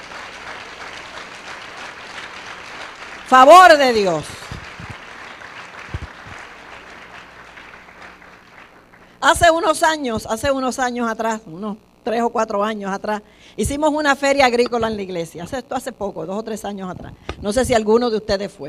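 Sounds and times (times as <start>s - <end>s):
audience applause: 0.0s - 9.2s
speech: 3.3s - 4.4s, 9.2s - 18.6s.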